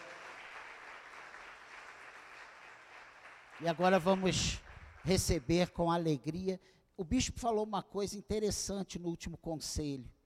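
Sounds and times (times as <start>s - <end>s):
audience applause: 0.0s - 5.3s
speech: 3.6s - 10.2s.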